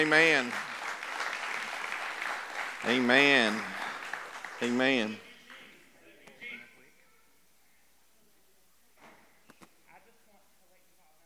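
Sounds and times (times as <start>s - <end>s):
speech: 0.0s - 0.7s, 2.8s - 3.8s, 4.6s - 5.2s
audience hand clapping: 0.0s - 5.8s.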